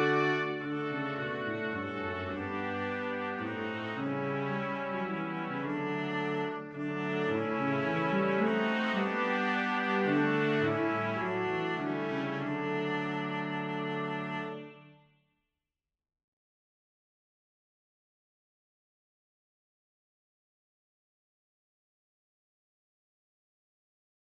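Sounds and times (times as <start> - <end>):
brass quintet playing: 0.0 - 14.6.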